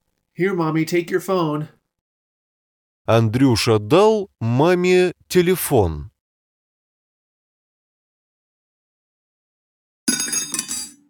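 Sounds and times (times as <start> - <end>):
speech: 0.4 - 1.8, 3.1 - 6.1
fork dropped and clinking: 10.1 - 11.0.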